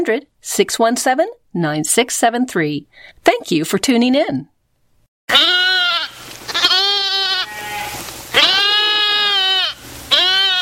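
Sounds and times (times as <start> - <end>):
speech: 0.0 - 4.6
goats and sheep bleating: 5.3 - 10.6.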